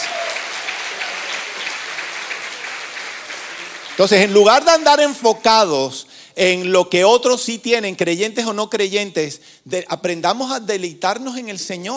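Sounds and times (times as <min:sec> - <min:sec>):
audience applause: 0:00.0 - 0:05.0
speech: 0:04.0 - 0:11.9.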